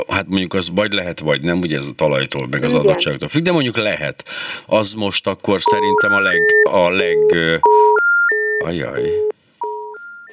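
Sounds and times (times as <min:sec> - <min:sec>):
speech: 0:00.0 - 0:08.0, 0:08.6 - 0:09.3
phone line dropping out with dial tones: 0:02.7 - 0:03.1, 0:07.6 - 0:10.3.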